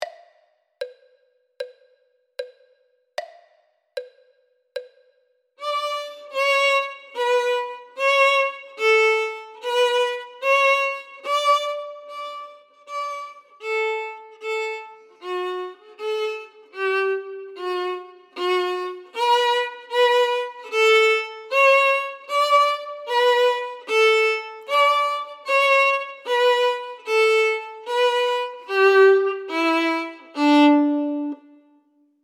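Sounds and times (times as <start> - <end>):
first violin: 5.6 - 31.8.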